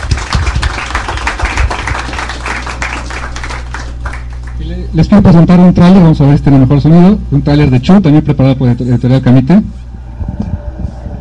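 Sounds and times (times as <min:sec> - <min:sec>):
audience applause: 0:00.0 - 0:04.6
speech: 0:04.9 - 0:09.8.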